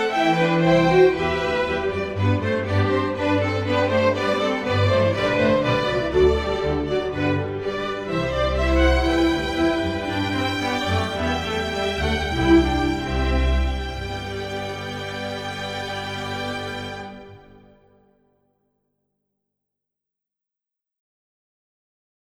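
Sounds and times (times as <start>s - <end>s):
string orchestra: 0.0s - 17.8s.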